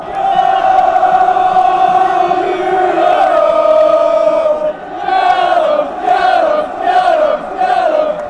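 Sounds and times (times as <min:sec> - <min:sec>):
football crowd chanting: 0:00.0 - 0:08.2.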